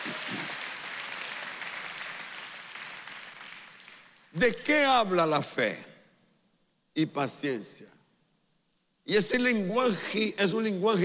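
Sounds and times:
audience applause: 0.0 - 4.3
speech: 4.4 - 5.9, 7.0 - 8.0, 9.1 - 11.0.

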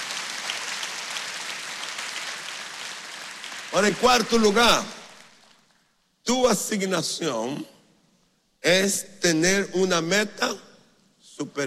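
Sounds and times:
audience applause: 0.0 - 5.6
speech: 3.7 - 5.0, 6.3 - 7.7, 8.6 - 10.7, 11.4 - 11.6.

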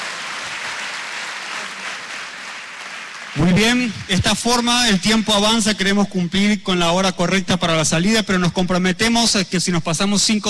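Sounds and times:
audience applause: 0.0 - 4.3
speech: 3.4 - 10.4.

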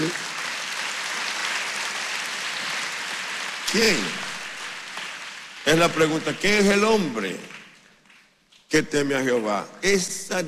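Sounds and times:
audience applause: 0.0 - 7.7
speech: 3.7 - 4.3, 5.6 - 7.6, 8.7 - 10.4.

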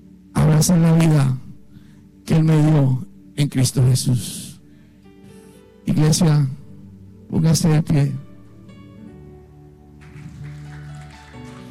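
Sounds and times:
speech: 0.6 - 1.4, 2.3 - 4.5, 5.8 - 6.6, 7.3 - 8.2
audience applauding: 10.0 - 11.7.

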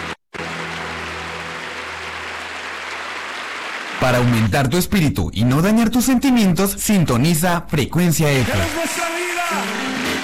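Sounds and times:
church congregation applauding in praise: 0.0 - 4.9, 8.2 - 10.2
speech: 4.0 - 10.0.

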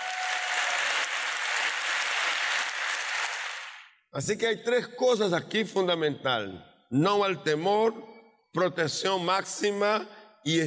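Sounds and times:
audience applause: 0.0 - 3.8
speech: 4.1 - 10.6.

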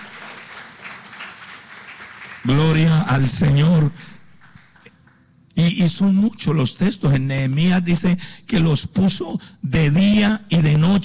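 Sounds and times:
crowd applauding: 0.0 - 3.2, 3.8 - 5.3
speech: 2.4 - 4.2, 5.6 - 11.0.

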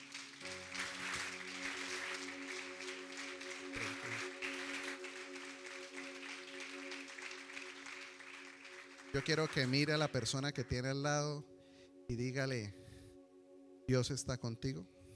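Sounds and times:
audience applauding: 0.0 - 10.8
speech: 9.2 - 11.5, 12.1 - 12.8, 13.9 - 15.0.

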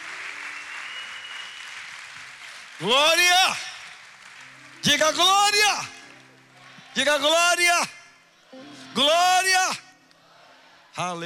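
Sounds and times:
audience applause for a pastor being introduced: 0.0 - 6.6
speech: 2.8 - 3.7, 4.8 - 6.0, 7.0 - 9.8, 11.0 - 11.2.

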